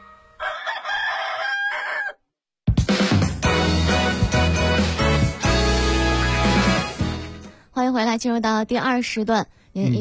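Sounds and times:
rooster crowing: 0.4 - 2.3
loud full-bodied music: 2.8 - 7.4
speech: 8.2 - 9.9.

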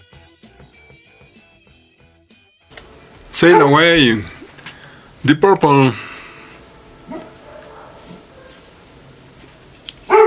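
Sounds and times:
speech: 3.4 - 4.3, 5.2 - 6.1
small dog barking: 7.1 - 8.7, 10.1 - 10.2.

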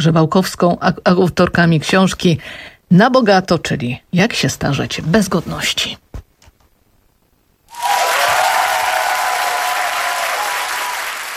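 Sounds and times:
speech: 0.0 - 6.0
audience applause in a radio studio at a public meeting with book authors: 7.7 - 11.3.

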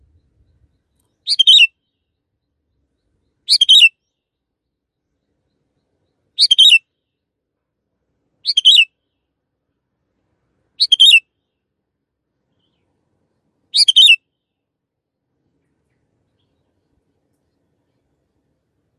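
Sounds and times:
canary chirping: 1.2 - 1.7, 3.5 - 3.9, 6.4 - 6.8, 10.8 - 11.2, 13.8 - 14.2.

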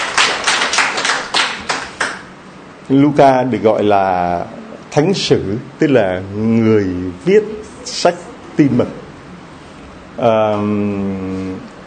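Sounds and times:
church congregation clapping in unison on the feast of Saint Luke: 0.0 - 2.3
speech: 2.9 - 9.0, 10.2 - 11.7.

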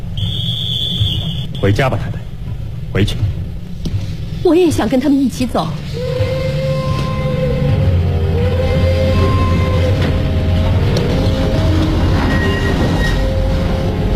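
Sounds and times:
train departing: 0.0 - 3.3, 5.6 - 14.1
speech: 1.6 - 2.2, 3.0 - 3.4, 4.4 - 5.8.

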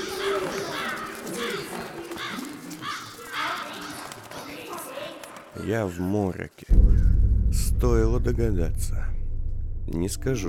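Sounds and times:
crows cawing as they take flight: 0.0 - 4.1
speech: 5.6 - 6.9, 7.8 - 9.1, 9.9 - 10.4
steady rushing background: 6.7 - 10.4.

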